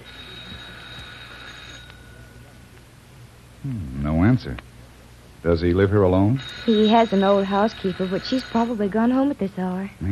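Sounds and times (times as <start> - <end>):
doorbell ringing: 0.0 - 2.4, 6.4 - 9.0
speech: 3.6 - 4.7, 5.4 - 10.1.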